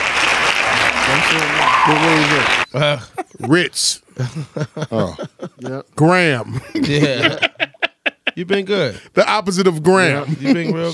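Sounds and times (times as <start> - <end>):
crowd hand clapping: 0.0 - 2.7
voices calling out and cheering: 0.0 - 2.7
laughter: 1.0 - 9.0, 10.0 - 10.9
speech: 1.3 - 7.5, 8.4 - 10.9.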